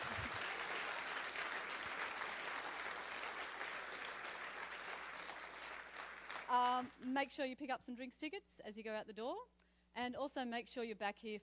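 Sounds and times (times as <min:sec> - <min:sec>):
audience applause: 0:00.0 - 0:06.9
speech: 0:06.5 - 0:11.4.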